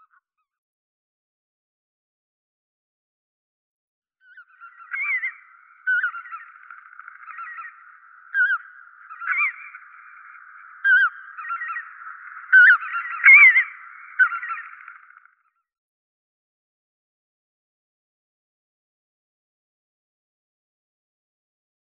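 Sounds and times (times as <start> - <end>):
Lesser white-fronted goose giving squeaky, wavering honking calls: 4.6 - 15.1.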